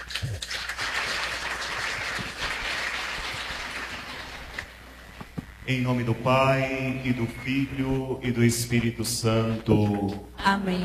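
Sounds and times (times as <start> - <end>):
crowd applause: 0.0 - 4.7
speech: 5.7 - 10.8.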